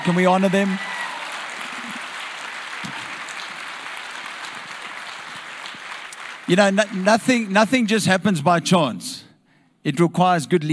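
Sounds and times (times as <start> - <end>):
speech: 0.0 - 0.9, 6.5 - 10.7
audience applause: 0.0 - 8.0.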